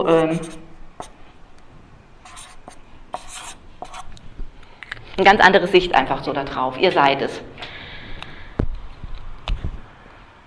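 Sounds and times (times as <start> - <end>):
speech: 0.0 - 1.1, 5.2 - 7.6
pen or pencil writing by hand on paper: 0.1 - 1.2, 2.2 - 4.1.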